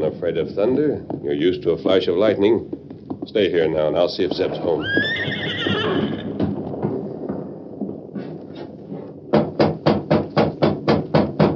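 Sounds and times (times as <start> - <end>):
speech: 0.0 - 5.6
horse hoofbeats clattering: 0.0 - 10.4
nervous horse giving a long shrill whinny: 4.5 - 6.7.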